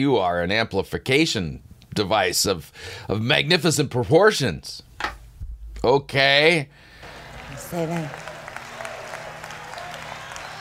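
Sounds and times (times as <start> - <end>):
speech: 0.0 - 5.2, 5.8 - 6.9, 7.7 - 8.3
audience clapping: 6.9 - 10.6.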